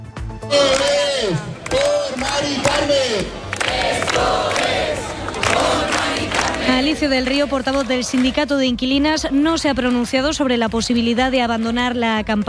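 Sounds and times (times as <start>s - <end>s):
protest crowd chanting at the Puerta del Sol: 0.5s - 8.2s
speech: 6.8s - 12.4s.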